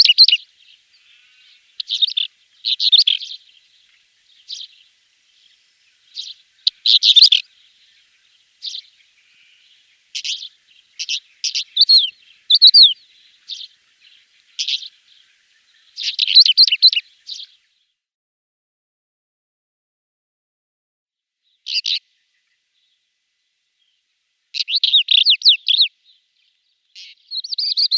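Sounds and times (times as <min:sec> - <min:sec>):
pied wheatear song: 0:00.0 - 0:17.7, 0:21.6 - 0:22.0, 0:24.6 - 0:25.9, 0:27.0 - 0:27.9.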